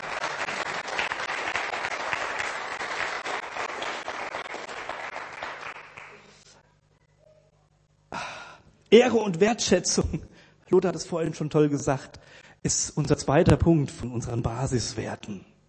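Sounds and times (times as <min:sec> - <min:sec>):
audience applause: 0:00.0 - 0:06.5
speech: 0:08.9 - 0:15.5.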